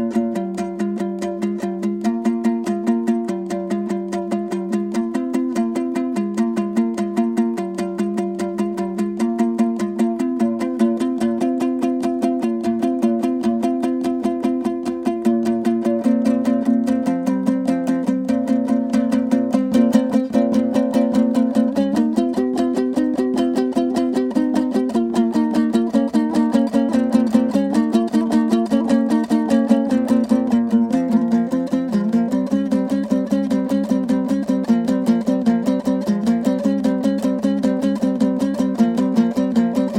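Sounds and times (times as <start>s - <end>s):
kui instrumental folk piece: 0.0s - 39.9s.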